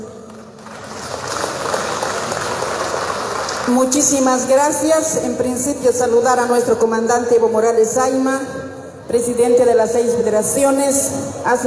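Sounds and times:
loud applause: 0:00.3 - 0:03.8
speech: 0:03.7 - 0:11.6.

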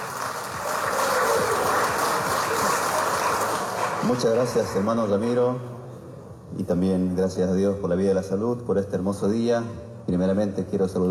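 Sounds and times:
crowd applauding: 0:00.0 - 0:05.2
speech: 0:04.0 - 0:05.7, 0:06.5 - 0:11.1.

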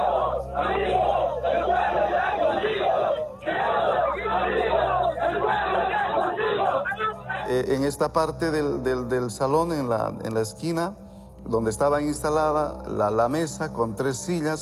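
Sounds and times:
crowd outside shouting and crying: 0:00.0 - 0:07.5
speech: 0:07.6 - 0:14.6.

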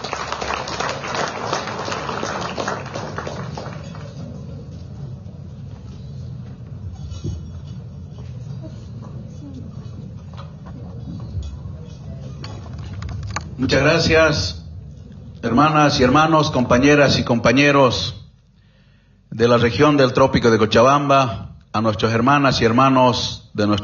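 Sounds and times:
crowd applause: 0:00.0 - 0:04.8
speech: 0:13.8 - 0:14.6, 0:15.4 - 0:18.2, 0:19.4 - 0:23.8.

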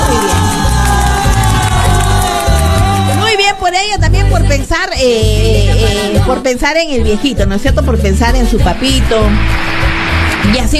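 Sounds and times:
audience applause: 0:00.0 - 0:03.5, 0:09.4 - 0:10.6
audience cheering: 0:00.0 - 0:03.7, 0:09.2 - 0:10.7
speech: 0:03.7 - 0:10.7.

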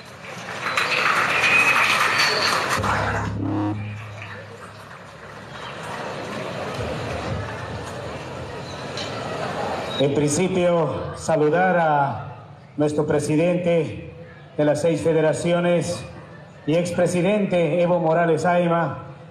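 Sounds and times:
audience applause: 0:00.0 - 0:08.6
speech: 0:10.0 - 0:16.1, 0:16.7 - 0:19.0.

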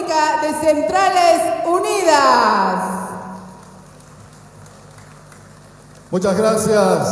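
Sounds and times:
speech: 0:00.1 - 0:03.0, 0:06.1 - 0:07.1
crowd applause: 0:03.5 - 0:06.4.

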